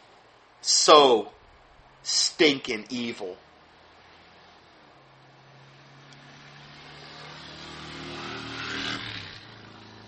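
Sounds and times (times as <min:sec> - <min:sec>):
speech: 0:00.8 - 0:01.4, 0:02.0 - 0:03.5
motorcycles of a biker gang riding past outside: 0:03.5 - 0:10.0.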